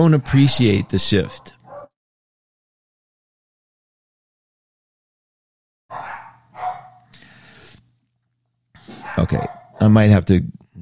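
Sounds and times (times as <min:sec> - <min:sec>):
speech: 0:00.0 - 0:01.6, 0:09.2 - 0:10.6
dogs barking at delivery people: 0:00.0 - 0:02.0, 0:05.9 - 0:07.2, 0:08.8 - 0:10.0.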